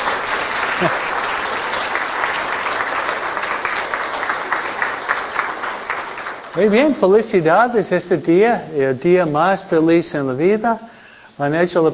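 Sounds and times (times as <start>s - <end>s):
audience applause for children: 0.0s - 7.1s
speech: 0.8s - 1.1s, 6.6s - 11.9s.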